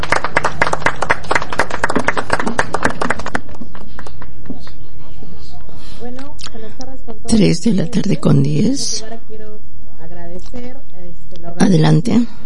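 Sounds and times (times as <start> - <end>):
audience applause: 0.0 - 4.8
speech: 7.5 - 9.2, 11.7 - 12.4.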